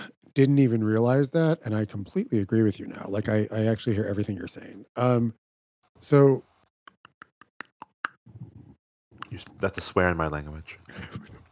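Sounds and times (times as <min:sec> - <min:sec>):
speech: 0:00.4 - 0:05.4, 0:06.0 - 0:06.5, 0:09.3 - 0:11.4
tongue clicks: 0:06.9 - 0:08.2.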